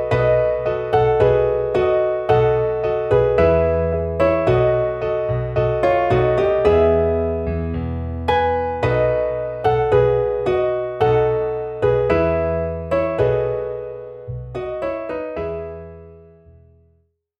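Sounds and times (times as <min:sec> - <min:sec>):
MIDI piano piece: 0:00.0 - 0:17.0.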